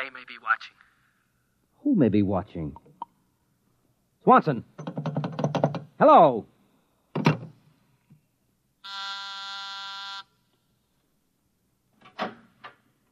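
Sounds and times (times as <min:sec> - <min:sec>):
speech: 0:00.0 - 0:00.8, 0:01.8 - 0:02.8, 0:04.2 - 0:05.0, 0:06.0 - 0:06.5
office intercom buzzer: 0:08.8 - 0:10.3.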